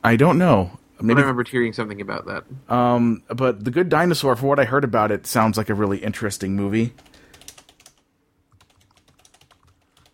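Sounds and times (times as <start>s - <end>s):
speech: 0.0s - 7.2s
two people typing on computer keyboards: 7.0s - 10.1s.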